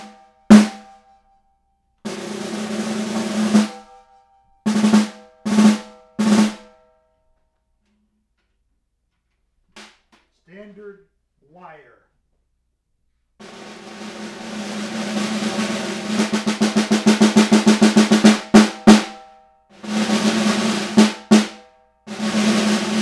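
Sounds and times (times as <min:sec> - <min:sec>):
drums: 0:00.0 - 0:01.0, 0:02.1 - 0:06.8, 0:13.4 - 0:22.9.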